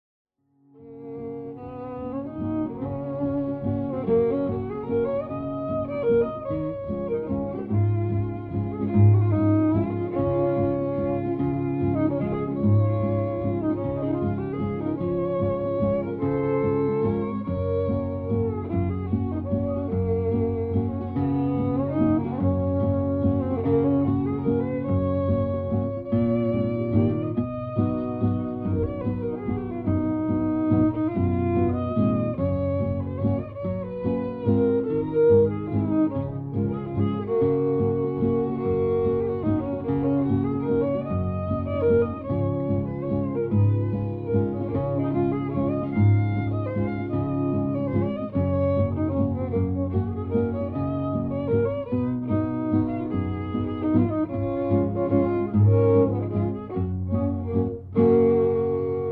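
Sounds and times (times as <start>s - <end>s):
waltz music: 0.8s - 59.0s.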